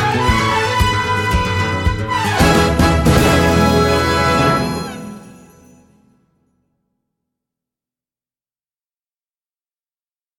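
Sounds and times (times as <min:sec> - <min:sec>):
Christmas song: 0:00.0 - 0:06.4.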